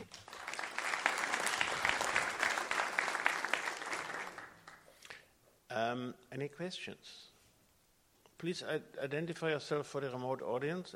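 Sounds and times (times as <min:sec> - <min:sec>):
audience applause after a conference presentation: 0:00.0 - 0:04.9
speech: 0:05.8 - 0:07.3, 0:08.4 - 0:10.9.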